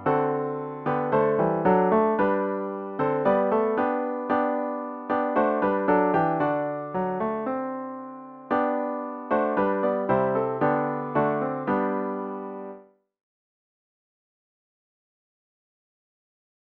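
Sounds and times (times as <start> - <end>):
hymn played on piano with intro: 0.0 - 12.9.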